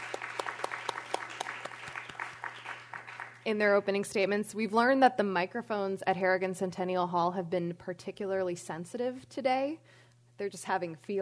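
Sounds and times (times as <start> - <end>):
audience applause: 0.0 - 3.4
speech: 3.4 - 11.1.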